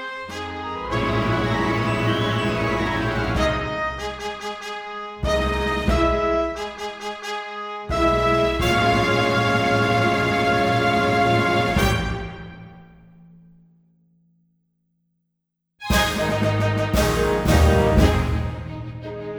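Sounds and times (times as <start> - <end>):
accompaniment backing track music: 0.5 - 7.1, 8.0 - 13.1, 15.8 - 19.3.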